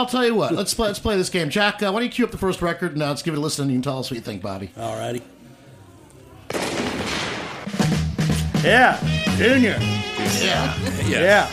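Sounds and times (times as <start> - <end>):
speech: 0.0 - 5.4, 8.6 - 11.5
laughter: 0.3 - 1.1, 10.2 - 11.5
shotgun blast: 6.5 - 7.8.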